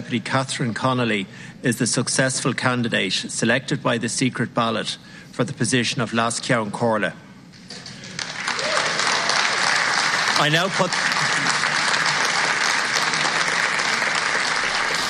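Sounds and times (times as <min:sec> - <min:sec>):
speech: 0:00.1 - 0:07.2, 0:10.4 - 0:11.1
parliament chamber applauding an announcement: 0:07.7 - 0:15.0.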